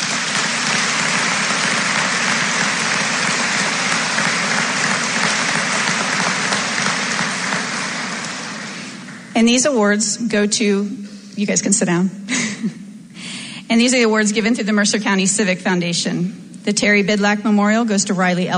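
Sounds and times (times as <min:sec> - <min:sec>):
audience applause: 0:00.0 - 0:09.3
speech: 0:09.4 - 0:12.8, 0:13.8 - 0:18.5.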